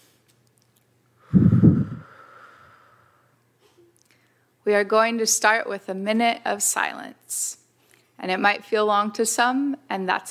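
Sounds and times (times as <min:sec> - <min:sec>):
group of people at a prayer gathering taking a deep breath together: 0:01.2 - 0:04.5
speech: 0:04.7 - 0:07.6, 0:08.2 - 0:10.2.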